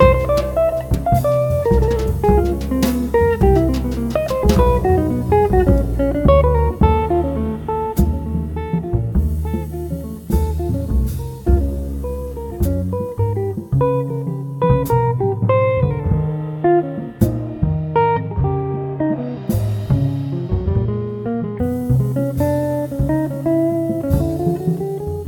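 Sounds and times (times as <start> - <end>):
drums: 0.0 - 25.2
guitar: 0.0 - 25.2.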